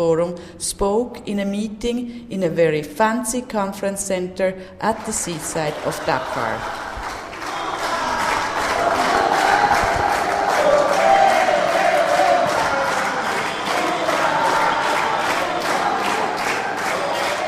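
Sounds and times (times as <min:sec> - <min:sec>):
speech: 0:00.0 - 0:06.8
large crowd of Brazilian delegates cheering for Lula in Dakar: 0:05.6 - 0:17.4.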